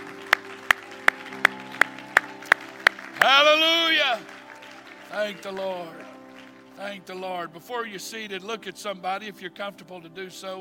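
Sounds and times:
audience clapping hands: 0:00.0 - 0:07.4
speech: 0:03.2 - 0:04.3, 0:05.1 - 0:06.1, 0:06.8 - 0:10.5.

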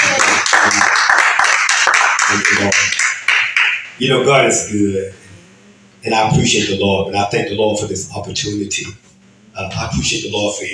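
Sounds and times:
hand clapping: 0:00.0 - 0:03.9
speech: 0:02.3 - 0:03.0, 0:04.0 - 0:05.2, 0:06.0 - 0:10.7.

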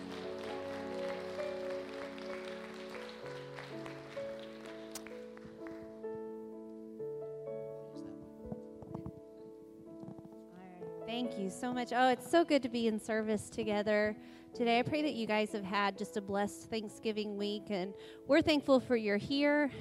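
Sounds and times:
audience clapping hands in praise: 0:00.0 - 0:06.0
sustained keyboard chords: 0:00.0 - 0:12.4
speech: 0:11.1 - 0:19.8.

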